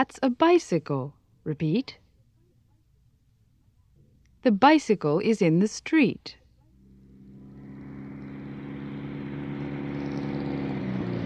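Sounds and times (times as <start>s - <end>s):
speech: 0.0s - 2.0s, 4.4s - 6.4s
car engine: 6.7s - 11.2s.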